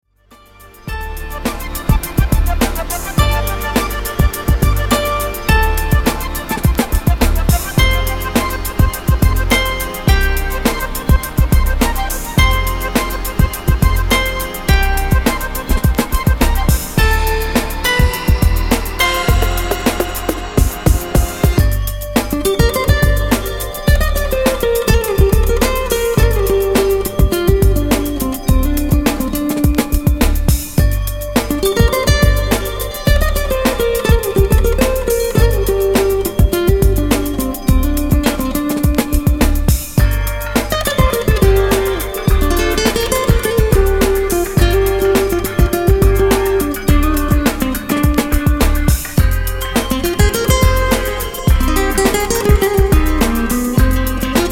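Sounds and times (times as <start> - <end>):
lounge music: 0.2 - 54.5.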